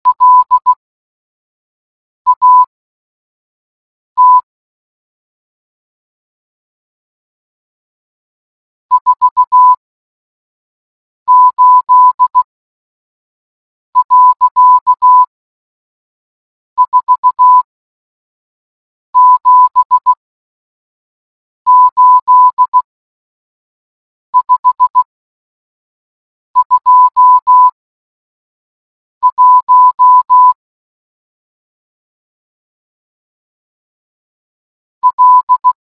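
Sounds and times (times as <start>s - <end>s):
morse code beeps: 0.1s - 0.7s, 2.3s - 2.7s, 4.2s - 4.4s, 8.9s - 9.8s, 11.3s - 12.5s, 14.0s - 15.3s, 16.8s - 17.7s, 19.2s - 20.2s, 21.7s - 22.8s, 24.4s - 25.1s, 26.6s - 27.8s, 29.2s - 30.6s, 35.0s - 35.8s.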